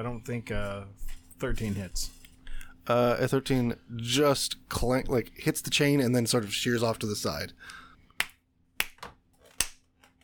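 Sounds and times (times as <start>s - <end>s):
speech: 0.0s - 2.2s, 2.9s - 7.8s
hand claps for audio sync: 8.2s - 9.8s.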